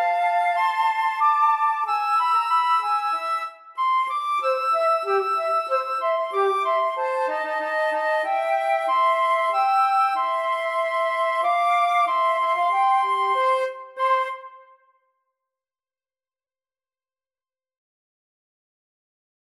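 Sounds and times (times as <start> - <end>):
flute duet: 0.0 - 14.8.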